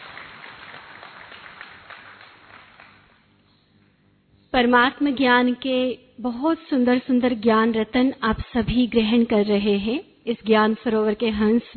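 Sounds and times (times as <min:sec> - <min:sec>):
audience applauding to welcome a speaker at a gathering: 0:00.0 - 0:03.2
speech: 0:04.6 - 0:11.7.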